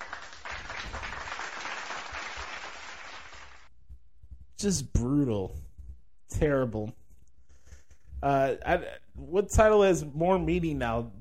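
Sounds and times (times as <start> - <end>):
round of applause: 0.0 - 3.7
speech: 4.6 - 5.7, 6.3 - 7.0, 8.2 - 11.1.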